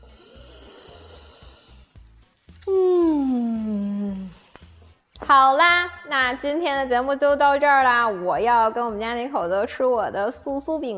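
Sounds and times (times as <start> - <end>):
deep inhale after smelling freshly baked crispy cakes: 0.0 - 2.0
steady low rhythmic background: 0.0 - 10.9
loud voiced sigh: 2.6 - 5.0
speech: 5.3 - 10.9.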